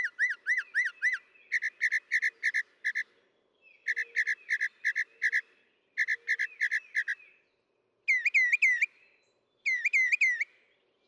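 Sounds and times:
Northern mockingbird song: 0.0 - 11.0.

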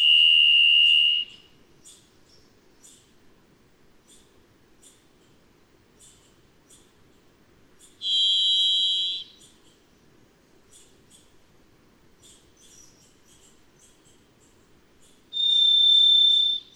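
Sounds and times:
varied thrush buzzy whistle: 0.0 - 1.5, 8.0 - 9.4, 15.4 - 16.7.

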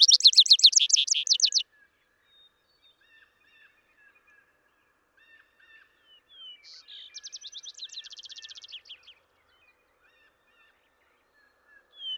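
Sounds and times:
Vesper sparrow songs of slurred whistles and a fast bright trill: 0.0 - 1.6, 6.4 - 9.2, 11.4 - 12.1.

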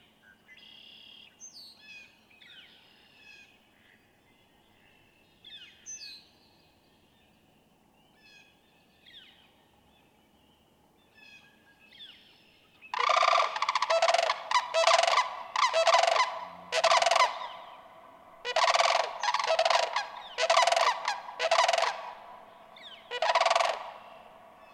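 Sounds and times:
sandhill crane calling in rattling bugles: 13.0 - 17.5, 18.4 - 22.2, 23.1 - 24.0.

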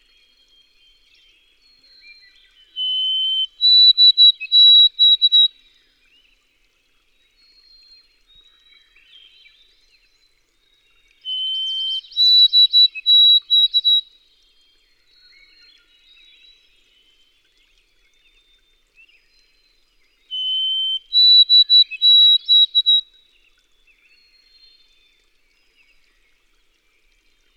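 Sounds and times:
White-throated sparrow whistled song: 2.0 - 5.5, 11.2 - 14.0, 20.3 - 23.0.

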